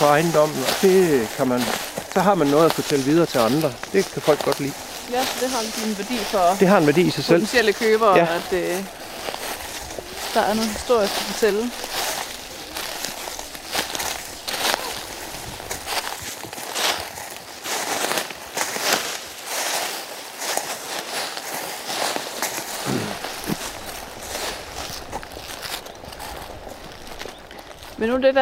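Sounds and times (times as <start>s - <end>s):
speech: 0.0s - 9.0s, 10.3s - 12.0s, 28.0s - 28.4s
footsteps walking through a large forest: 0.0s - 28.4s.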